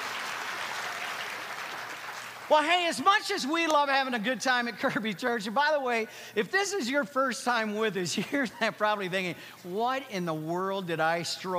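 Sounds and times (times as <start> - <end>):
crowd clapping: 0.0 - 3.1
speech: 2.5 - 11.5.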